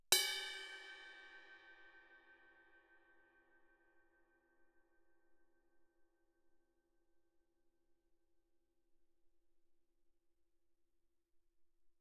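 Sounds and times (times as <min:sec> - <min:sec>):
suspended cymbal crash struck with a stick on the bell: 0:00.1 - 0:03.1.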